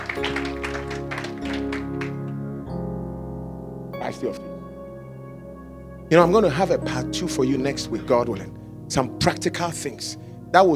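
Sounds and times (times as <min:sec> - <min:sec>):
audience clapping: 0:00.0 - 0:02.4
sustained organ-like chords: 0:00.0 - 0:10.7
speech: 0:04.1 - 0:04.6, 0:06.1 - 0:10.7.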